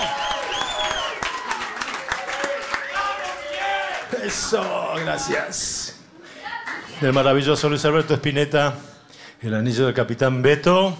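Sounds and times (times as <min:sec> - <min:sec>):
loud applause: 0:00.0 - 0:07.7
speech: 0:04.3 - 0:06.0, 0:07.0 - 0:10.9.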